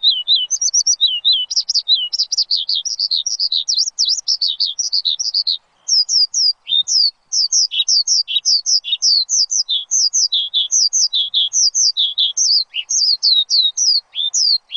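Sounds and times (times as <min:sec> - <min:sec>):
bird song with rapid high chirps and whistled twitters: 0:00.0 - 0:14.7.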